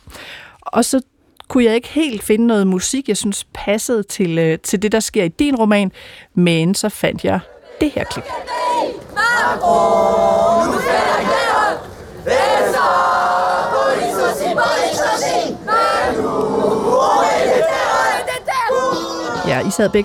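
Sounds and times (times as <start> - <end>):
speech: 0.7 - 8.6, 9.4 - 11.4, 19.5 - 20.0
French youth demonstration chanting a song about President Macron: 7.4 - 20.0.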